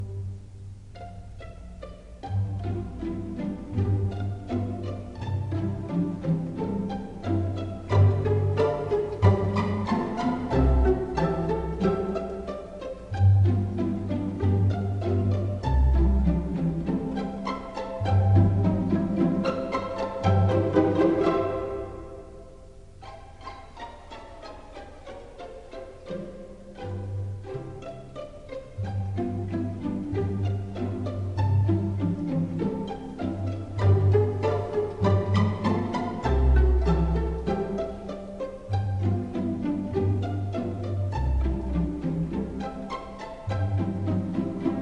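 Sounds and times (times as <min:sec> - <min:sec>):
pizzicato polka: 0:00.0 - 0:44.7.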